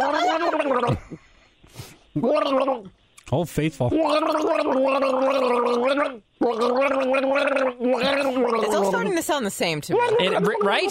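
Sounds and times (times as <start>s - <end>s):
gargling water while singing: 0.0s - 1.0s, 2.2s - 2.9s, 3.9s - 9.2s
speech: 2.2s - 10.8s.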